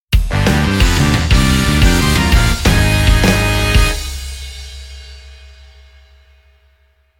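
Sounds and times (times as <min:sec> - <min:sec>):
jingle intro: 0:00.6 - 0:04.6.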